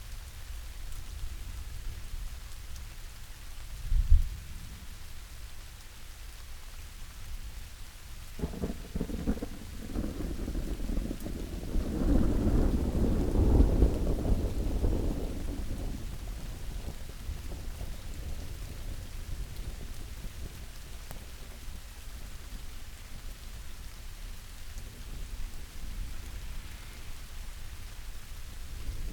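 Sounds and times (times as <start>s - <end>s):
rain: 0.0s - 29.1s
thunder: 8.4s - 19.0s, 24.8s - 29.1s.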